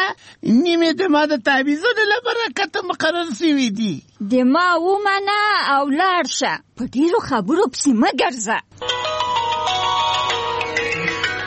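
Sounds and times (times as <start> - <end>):
speech: 0.3 - 9.2
mobile phone ringtone: 8.8 - 11.4.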